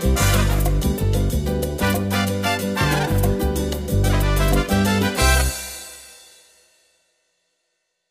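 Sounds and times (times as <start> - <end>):
salsa music: 0.0 - 6.1.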